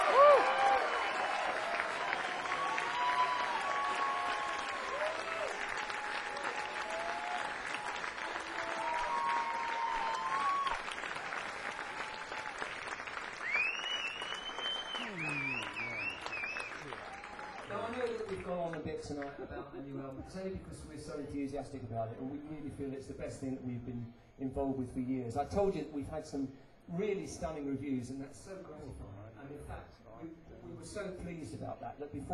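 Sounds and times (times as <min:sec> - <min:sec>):
audience clapping: 0:00.0 - 0:19.4
crowd voices and cheers: 0:00.0 - 0:19.4
speech: 0:19.0 - 0:29.0, 0:30.9 - 0:32.3.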